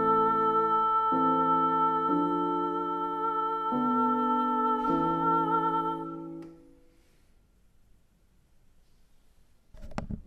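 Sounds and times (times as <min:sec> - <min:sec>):
soprano singing: 0:00.0 - 0:06.8.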